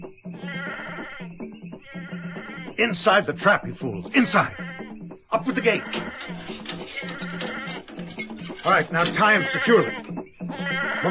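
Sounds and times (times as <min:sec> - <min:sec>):
goat bleating on a jungle trail: 0:00.4 - 0:01.2, 0:04.2 - 0:11.1
speech: 0:02.8 - 0:04.6, 0:05.4 - 0:07.6, 0:08.6 - 0:10.0.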